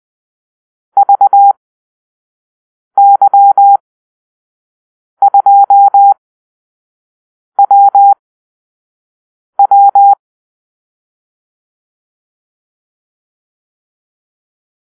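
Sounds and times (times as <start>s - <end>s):
morse code call-sign beeps: 1.0s - 1.6s, 3.0s - 3.8s, 5.2s - 6.2s, 7.6s - 8.2s, 9.6s - 10.2s.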